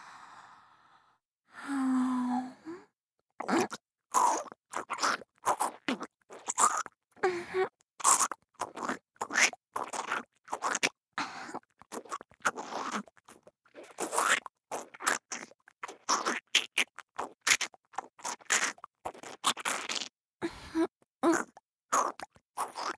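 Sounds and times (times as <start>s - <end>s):
breathy sigh-like sound: 0.0s - 2.9s
crunchy chewing while eating: 3.4s - 7.0s, 8.0s - 20.1s, 21.3s - 22.9s.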